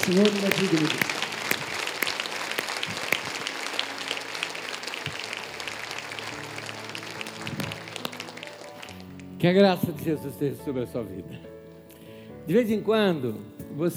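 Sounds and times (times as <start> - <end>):
crowd applauding: 0.0 - 9.2
speech: 0.1 - 1.2, 9.4 - 11.5, 12.5 - 13.9.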